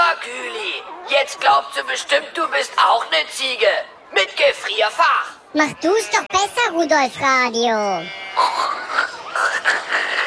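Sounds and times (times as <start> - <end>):
speech: 1.1 - 8.8
voice imitating a pig grunting: 8.2 - 10.2.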